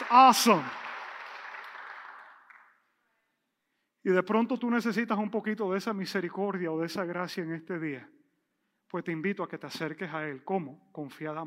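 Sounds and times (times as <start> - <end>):
audience applause: 0.0 - 2.7
speech: 0.1 - 0.8, 4.0 - 8.2, 8.9 - 11.4.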